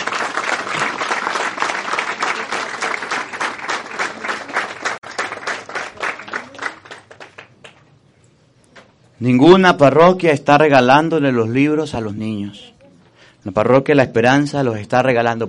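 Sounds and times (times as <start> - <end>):
audience applause for children: 0.0 - 7.9
speech: 9.2 - 12.6, 13.4 - 15.4.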